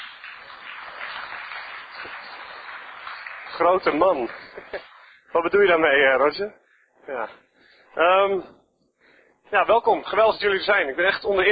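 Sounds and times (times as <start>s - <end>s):
audience applause: 0.0s - 5.7s
speech: 3.5s - 7.4s, 8.0s - 8.6s, 9.5s - 11.5s.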